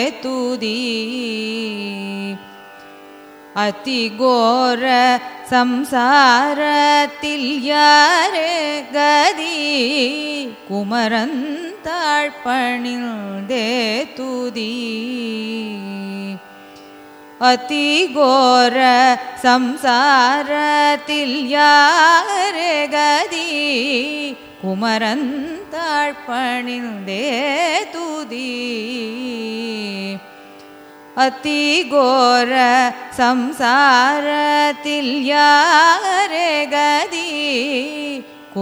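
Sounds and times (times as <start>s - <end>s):
carnatic raga music: 0.0s - 38.6s.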